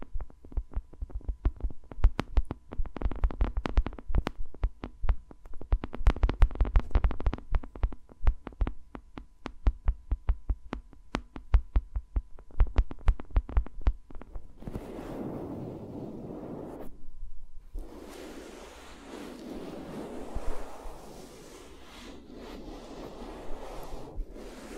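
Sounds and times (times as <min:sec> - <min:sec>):
fingers tapping microphones: 0:00.0 - 0:14.5
scratchy rubbing and rustling on microphones: 0:14.4 - 0:16.9, 0:17.7 - 0:24.7.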